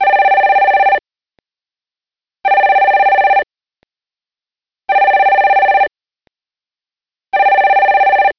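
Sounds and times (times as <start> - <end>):
telephone: 0.0 - 1.0, 2.5 - 3.5, 4.9 - 5.9, 7.4 - 8.3.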